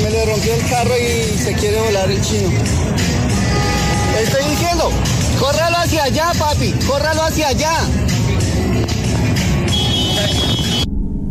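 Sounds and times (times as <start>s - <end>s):
street fight commotion at night in Zona T: 0.0s - 10.8s
speech: 1.5s - 8.9s.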